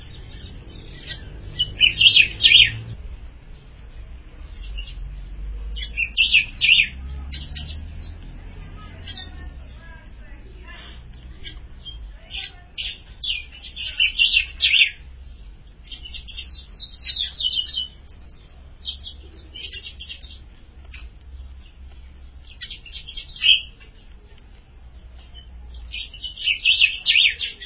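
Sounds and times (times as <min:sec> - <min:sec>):
ultramarine grosbeak song: 0:00.0 - 0:27.6.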